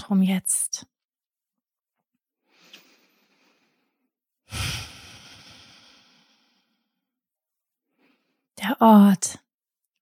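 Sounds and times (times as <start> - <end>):
speech: 0.1 - 0.9, 8.6 - 9.4
deep breathing in and out: 2.4 - 7.0.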